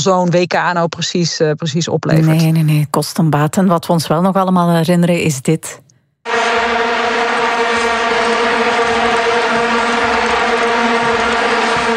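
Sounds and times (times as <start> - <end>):
speech: 0.0 - 6.4
vuvuzelas, plastic stadium horns blaring: 6.3 - 11.9.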